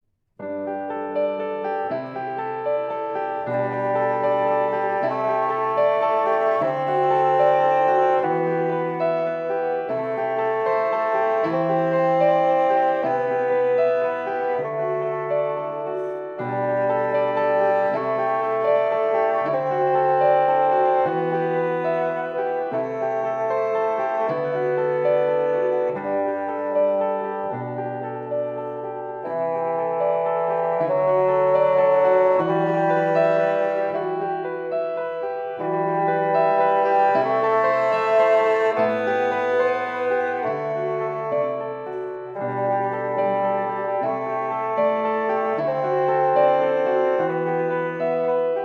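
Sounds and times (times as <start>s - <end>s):
bassoon: 1.2s - 48.6s.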